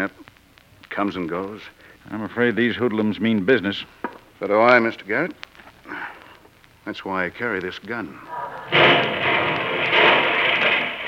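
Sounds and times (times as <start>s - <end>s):
speech: 0.0s - 0.2s, 1.0s - 6.1s, 6.9s - 9.1s
car bomb explosion: 8.3s - 11.0s
heavy rumbling roar: 8.3s - 11.0s.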